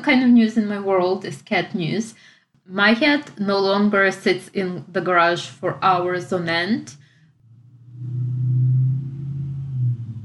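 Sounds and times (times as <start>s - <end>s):
speech: 0.0s - 7.0s
motorcycle passing outside the house: 6.9s - 10.2s.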